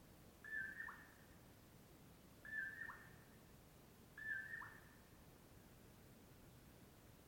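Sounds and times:
Common Poorwill giving mellow whistled phrases: 0.4s - 1.0s, 2.4s - 3.1s, 4.2s - 4.8s.

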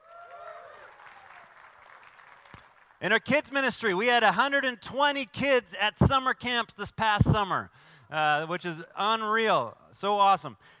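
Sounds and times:
audience cheering and applause: 0.0s - 3.0s
speech: 3.0s - 10.7s.

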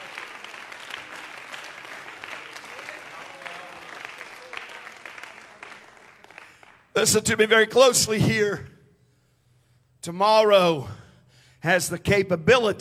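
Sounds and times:
people clapping: 0.0s - 7.2s
speech: 7.0s - 8.7s, 10.0s - 11.0s, 11.6s - 12.7s.

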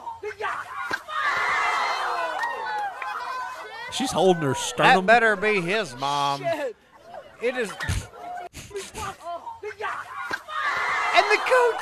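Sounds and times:
crowd roaring after a big hit: 0.6s - 6.6s, 10.1s - 11.8s
laughter: 2.1s - 10.2s, 10.8s - 11.8s
speech: 3.9s - 6.8s, 7.4s - 8.1s, 11.3s - 11.8s.

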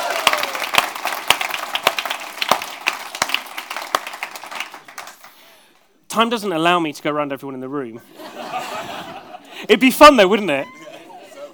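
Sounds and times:
audience clapping in the room: 0.0s - 5.6s
speech: 6.2s - 8.2s, 9.6s - 10.8s
laughter: 8.0s - 11.5s.

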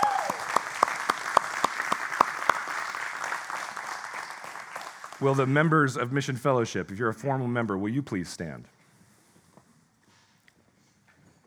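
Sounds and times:
church congregation applauding to welcome a new member: 0.0s - 6.2s
speech: 5.2s - 8.8s.

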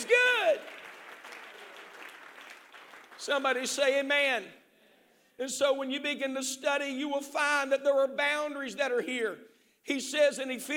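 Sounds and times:
audience clapping hands: 0.0s - 4.1s
speech: 3.2s - 4.6s, 5.4s - 10.7s.

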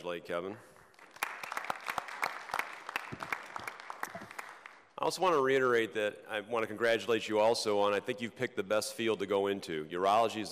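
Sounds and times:
speech: 0.0s - 0.8s, 5.0s - 10.5s
audience applause: 0.9s - 4.8s.

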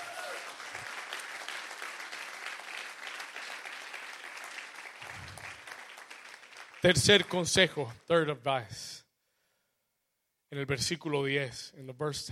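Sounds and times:
loud applause: 0.0s - 7.6s
speech: 6.8s - 9.0s, 10.5s - 12.2s.

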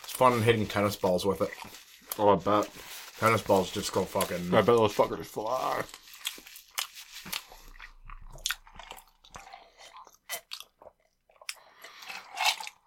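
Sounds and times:
speech: 0.2s - 6.0s
person chewing chicken with the mouth open: 5.9s - 12.8s.

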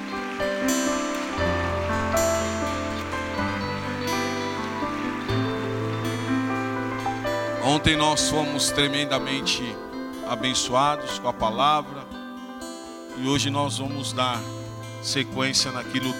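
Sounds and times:
audience applause: 0.0s - 7.8s
speech: 7.7s - 12.2s, 13.2s - 16.1s.

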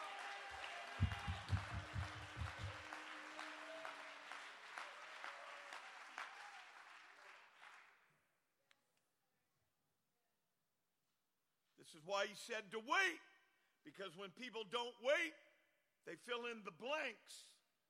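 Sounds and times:
audience clapping: 0.0s - 8.2s
speech: 11.9s - 15.4s, 16.0s - 17.6s.

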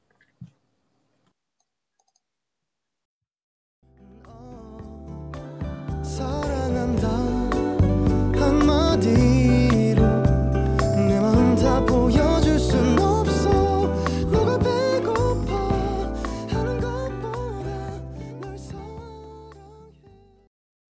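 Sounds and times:
pop song: 4.0s - 20.5s.

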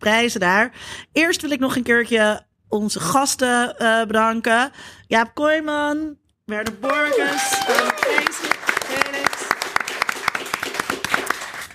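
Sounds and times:
speech: 0.0s - 9.4s
live studio audience applauding: 6.8s - 11.7s.

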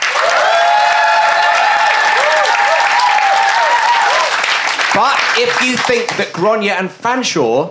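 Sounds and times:
faint cheers and whoops: 0.0s - 4.5s
audience clapping: 0.0s - 6.6s
speech: 5.0s - 7.6s.

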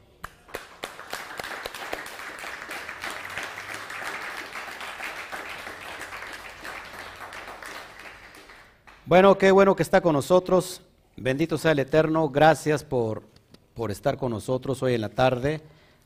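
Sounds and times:
applause: 0.2s - 9.2s
speech: 9.1s - 15.8s.

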